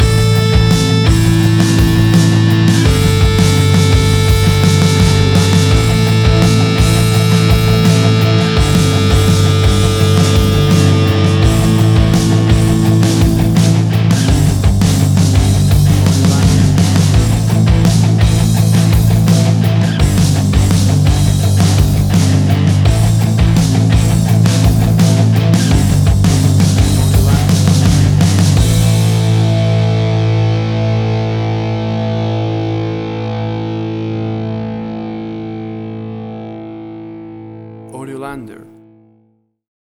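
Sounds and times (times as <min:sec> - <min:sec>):
stadium rock music: 0:00.0 - 0:38.6.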